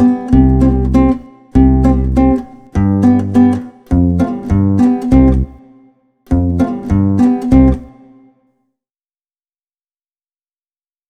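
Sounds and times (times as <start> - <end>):
instrumental music: 0.0 - 8.5.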